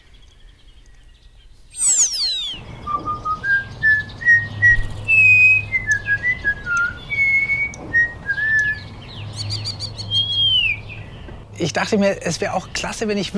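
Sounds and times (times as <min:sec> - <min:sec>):
low hum: 0:01.7 - 0:05.1
starling whistling song: 0:01.7 - 0:11.3
speech: 0:11.6 - 0:13.3.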